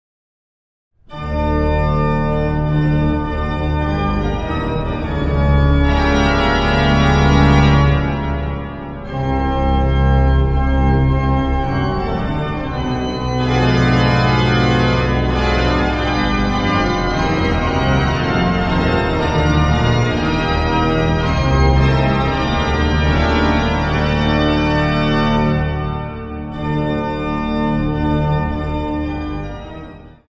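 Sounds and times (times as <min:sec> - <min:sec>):
fantasia and fugue: 0:01.1 - 0:30.2.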